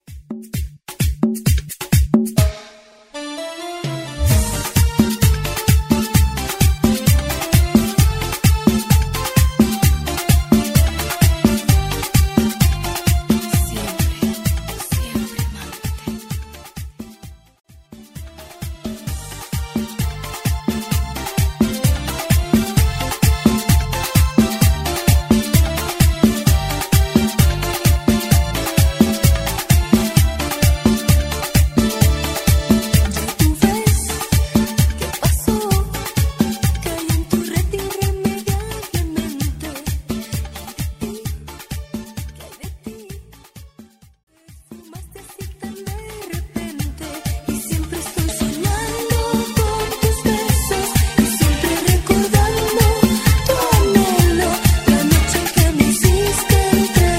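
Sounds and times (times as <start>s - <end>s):
dance music: 0.0s - 57.1s.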